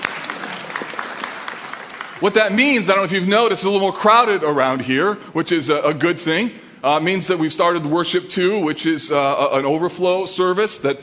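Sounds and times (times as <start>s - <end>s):
audience clapping: 0.0s - 2.9s
speech: 2.2s - 11.0s.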